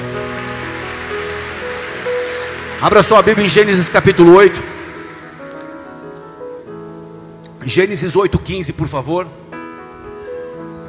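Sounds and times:
audience applauding: 0:00.0 - 0:05.8
speech: 0:02.8 - 0:04.7, 0:07.6 - 0:09.5.

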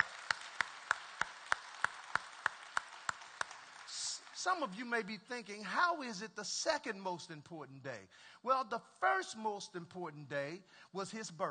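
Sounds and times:
audience applause: 0:00.0 - 0:04.8
speech: 0:04.4 - 0:11.4.

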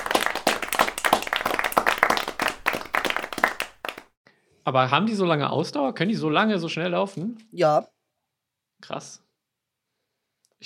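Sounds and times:
applause: 0:00.0 - 0:04.2
speech: 0:04.7 - 0:07.9, 0:08.9 - 0:09.2.

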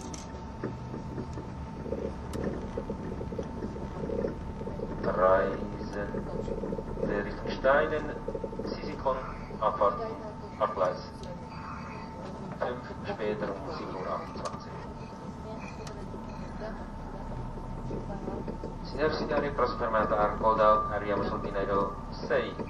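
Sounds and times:
faint constant tone: 0:00.0 - 0:22.6
passengers talking: 0:00.0 - 0:22.6
train running on the Gotthard Base Tunnel route: 0:00.0 - 0:22.6.

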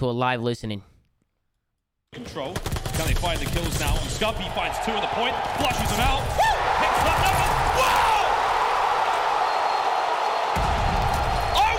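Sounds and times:
speech: 0:00.0 - 0:00.9, 0:02.1 - 0:08.1
esports arena crowd cheering: 0:03.8 - 0:11.7.

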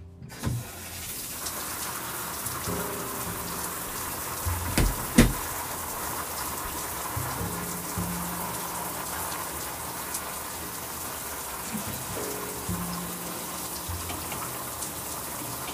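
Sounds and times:
shower water running: 0:00.3 - 0:15.7
sharp knock: 0:04.6 - 0:05.4.

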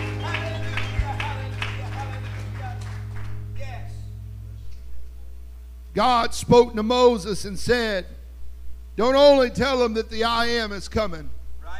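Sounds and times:
audience clapping hands in praise: 0:00.0 - 0:03.5
sustained organ-like tones: 0:00.0 - 0:11.0
speech: 0:06.0 - 0:08.2, 0:09.0 - 0:11.4.

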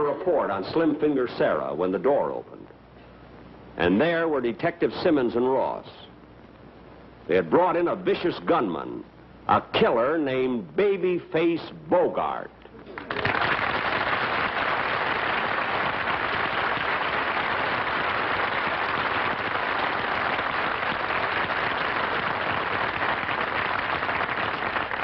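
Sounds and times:
speech: 0:00.1 - 0:02.6, 0:03.8 - 0:06.0, 0:07.3 - 0:13.3
applause: 0:12.9 - 0:25.0.

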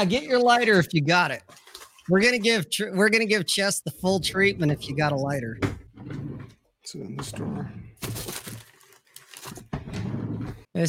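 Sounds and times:
speech: 0:00.0 - 0:06.2, 0:06.9 - 0:08.4
things being moved around: 0:01.4 - 0:02.6, 0:04.0 - 0:10.7
drawers opening: 0:04.1 - 0:08.6, 0:09.4 - 0:10.7.

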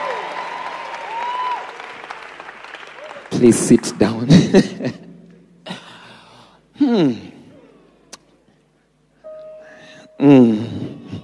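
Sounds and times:
audience applauding: 0:00.0 - 0:04.2
speech: 0:03.4 - 0:05.0, 0:07.0 - 0:07.2.

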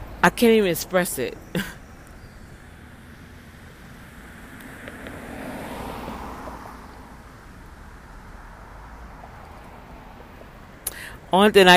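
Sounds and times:
vehicle passing: 0:00.0 - 0:11.4
road and wind noise at a bus stop: 0:00.0 - 0:11.7
speech: 0:00.2 - 0:01.8, 0:11.3 - 0:11.7.

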